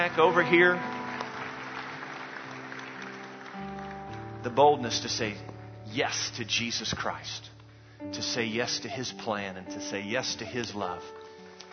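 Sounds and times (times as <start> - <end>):
speech: 0.0 - 1.0, 4.4 - 11.2
audience applause: 0.0 - 4.8.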